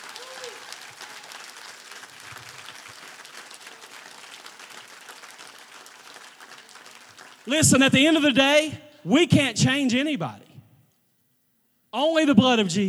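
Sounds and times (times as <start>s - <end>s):
large audience applause: 0.0s - 8.4s
speech: 7.4s - 10.4s, 11.9s - 12.8s.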